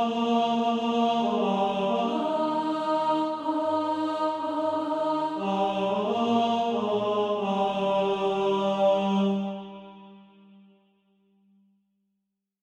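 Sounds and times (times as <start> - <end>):
tenor practice music: 0.0 - 9.6.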